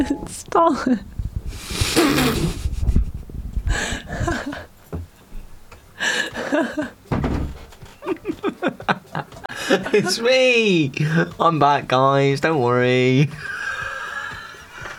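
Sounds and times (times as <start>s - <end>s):
speech: 0.0s - 2.7s, 6.0s - 7.0s, 8.2s - 13.6s
heavy dull thuds on a door: 3.7s - 5.5s, 7.1s - 7.7s
laughter: 6.0s - 7.0s, 8.0s - 10.4s, 13.3s - 14.9s.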